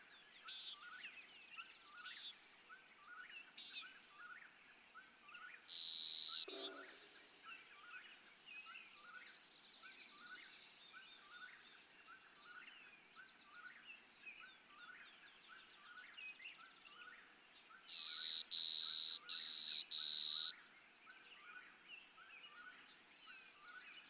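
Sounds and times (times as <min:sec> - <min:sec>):
clay-colored sparrow buzzy song: 0:00.0 - 0:24.0.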